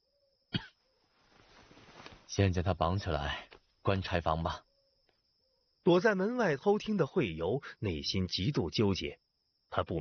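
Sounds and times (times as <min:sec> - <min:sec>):
man coughing: 0:00.5 - 0:00.8
faint low rustling: 0:01.0 - 0:02.5
speech: 0:02.4 - 0:04.7, 0:05.8 - 0:09.9.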